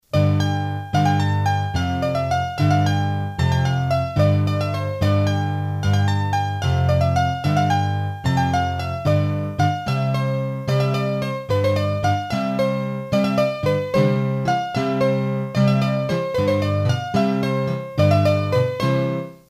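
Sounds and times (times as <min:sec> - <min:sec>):
hurdy-gurdy playing a bourree from Auvergne: 0:00.2 - 0:18.8.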